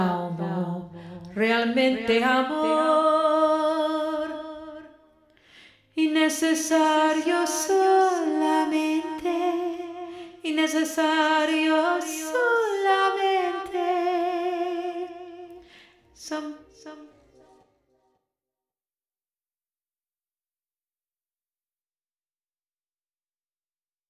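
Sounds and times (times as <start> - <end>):
lead vocal with reverb: 0.0 - 17.4.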